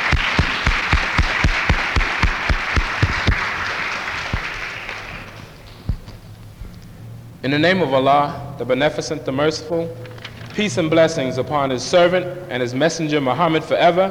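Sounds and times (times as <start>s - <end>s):
audience applause: 0.0s - 6.5s
loud claps: 0.0s - 7.0s
speech: 7.4s - 14.0s.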